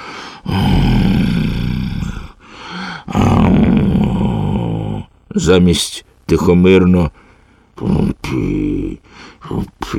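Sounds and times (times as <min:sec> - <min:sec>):
loud rough snoring with a strange moaning tone: 0:00.4 - 0:02.4, 0:03.1 - 0:05.1
speech: 0:05.4 - 0:07.2, 0:07.8 - 0:08.7, 0:09.5 - 0:09.9.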